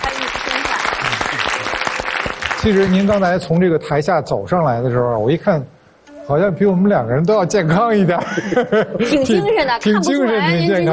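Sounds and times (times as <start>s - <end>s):
audience applause welcoming a guest onto the stage: 0.0s - 3.2s
speech: 2.6s - 10.9s
laughter: 8.0s - 9.5s.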